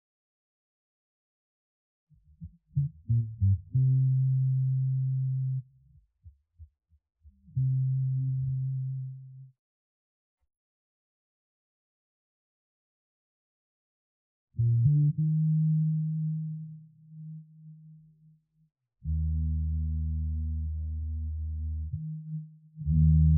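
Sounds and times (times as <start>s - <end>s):
bass: 2.1s - 9.5s, 14.6s - 18.4s, 19.0s - 23.3s.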